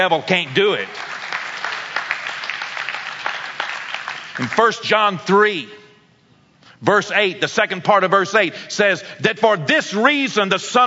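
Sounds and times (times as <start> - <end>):
speech: 0.0 - 1.1, 4.4 - 5.8, 6.8 - 10.8
congregation clapping: 0.0 - 5.2.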